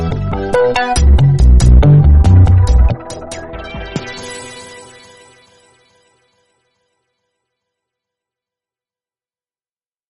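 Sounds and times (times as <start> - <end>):
ringtone: 0.6 - 6.5.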